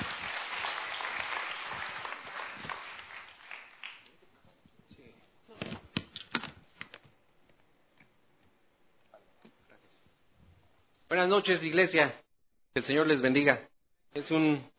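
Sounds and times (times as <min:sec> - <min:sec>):
audience applause: 0:00.0 - 0:04.1
speech: 0:11.1 - 0:12.2, 0:12.8 - 0:14.7.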